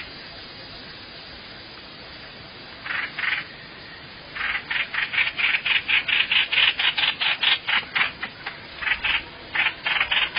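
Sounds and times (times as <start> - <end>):
bird rasping calls: 2.8 - 3.5, 4.4 - 10.3.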